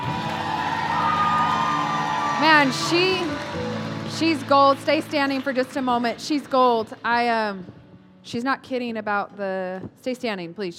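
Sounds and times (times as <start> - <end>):
crowd cheering and clapping: 0.0 - 7.0
speech: 2.4 - 3.3, 4.2 - 10.7.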